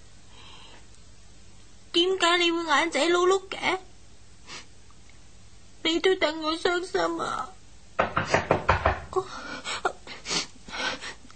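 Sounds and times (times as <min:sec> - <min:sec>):
speech: 0:02.2 - 0:03.9, 0:05.9 - 0:07.6
sharp raps on a door: 0:08.0 - 0:09.2.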